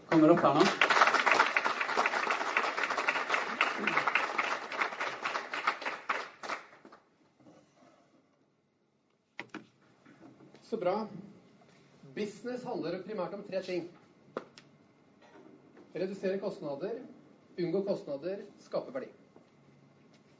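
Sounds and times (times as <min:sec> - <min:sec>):
crowd applauding: 0:00.0 - 0:07.0
speech: 0:00.2 - 0:00.9, 0:10.8 - 0:11.2, 0:12.2 - 0:14.0, 0:16.0 - 0:19.2.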